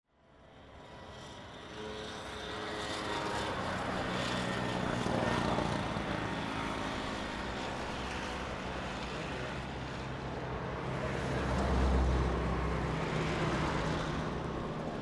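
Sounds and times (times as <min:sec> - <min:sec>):
traffic: 0:00.4 - 0:15.0.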